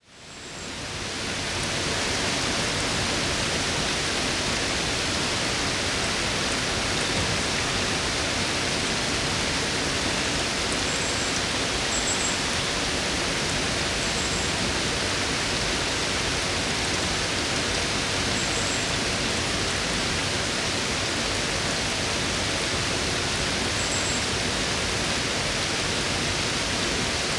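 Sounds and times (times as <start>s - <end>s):
heavy pouring rain: 0.0s - 27.3s.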